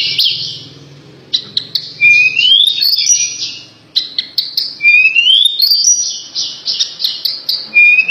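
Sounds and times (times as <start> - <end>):
Horsfield's bush lark singing: 0.0 - 8.1.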